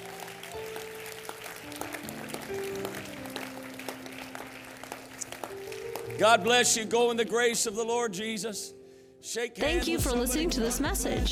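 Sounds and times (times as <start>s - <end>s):
audience applauding: 0.0s - 6.8s
speech: 6.2s - 11.3s.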